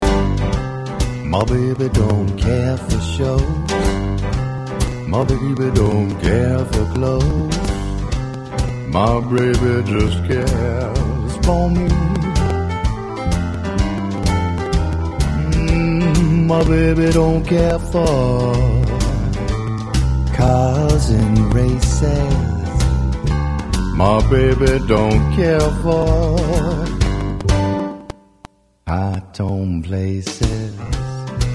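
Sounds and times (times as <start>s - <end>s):
swing music: 0.0s - 31.5s.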